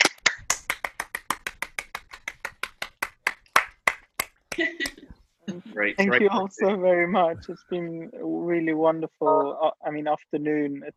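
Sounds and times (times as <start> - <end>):
group clapping hands over video call: 0.0 - 5.1
speech: 4.6 - 4.9, 5.8 - 10.9.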